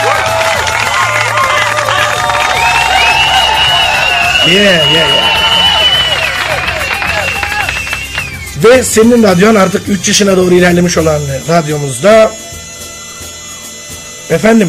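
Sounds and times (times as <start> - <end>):
cheering and shouting voices: 0.0 - 7.8
crowd clapping: 0.0 - 8.8
speech: 4.5 - 5.3, 8.6 - 12.4, 14.3 - 14.6.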